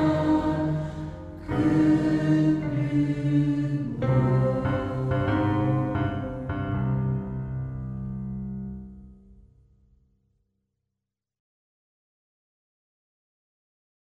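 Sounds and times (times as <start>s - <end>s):
sung song: 0.0s - 7.4s.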